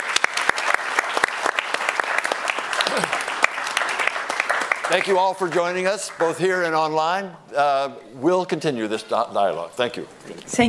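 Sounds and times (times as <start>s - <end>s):
audience applause: 0.0s - 6.5s
speech: 4.9s - 10.6s.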